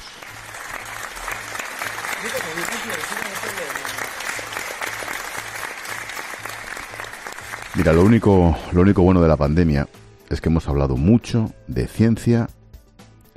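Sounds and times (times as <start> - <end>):
evening applause from balconies: 0.0 - 8.5
speech: 2.2 - 3.8, 7.8 - 12.6.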